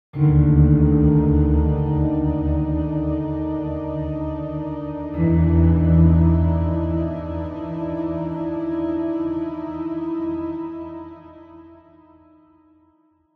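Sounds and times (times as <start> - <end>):
dark piano: 0.2 - 12.7.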